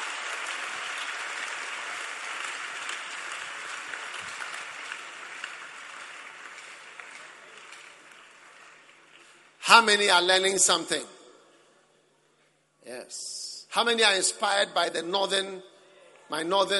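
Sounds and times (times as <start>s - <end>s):
audience clapping: 0.0s - 10.0s
speech: 9.7s - 11.2s, 13.1s - 15.7s, 16.3s - 16.7s.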